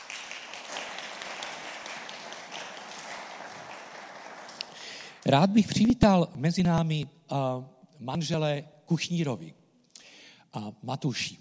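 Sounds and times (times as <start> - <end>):
audience applause: 0.0 - 5.4
speech: 5.3 - 9.6, 10.5 - 11.4.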